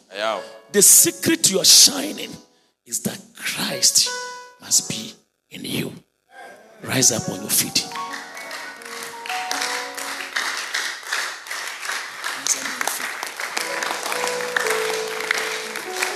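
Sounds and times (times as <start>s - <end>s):
speech: 0.2s - 6.0s, 6.8s - 8.0s
audience clapping: 7.3s - 16.1s.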